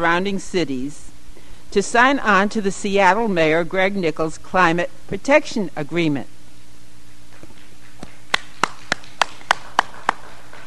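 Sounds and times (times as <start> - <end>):
speech: 0.0 - 1.0, 1.7 - 6.4
audience clapping: 7.5 - 10.6.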